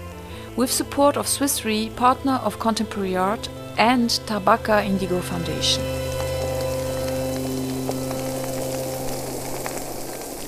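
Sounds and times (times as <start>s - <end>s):
speech: 0.6s - 6.0s
underwater current moving rocks and sand in the Rhine Canyon near Versam: 6.1s - 10.4s.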